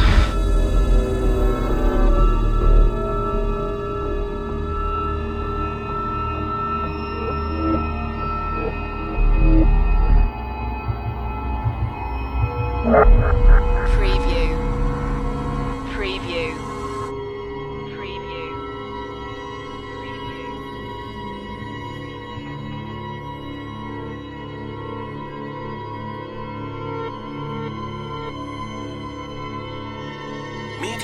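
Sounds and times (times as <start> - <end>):
dark ambience: 0.1 - 17.2.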